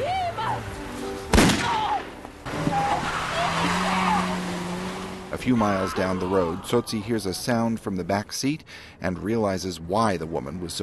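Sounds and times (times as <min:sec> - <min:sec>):
gunshot in a film scene: 0:01.3 - 0:01.9
low engine-like drone: 0:02.4 - 0:06.7
strained rising voices: 0:02.5 - 0:09.4
speech: 0:05.4 - 0:10.8.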